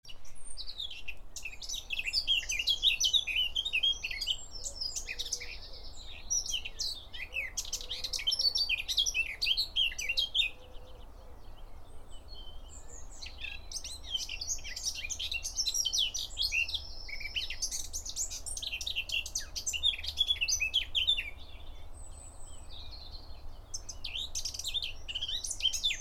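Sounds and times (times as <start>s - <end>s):
Eurasian blackcap song: 0.1s - 25.9s.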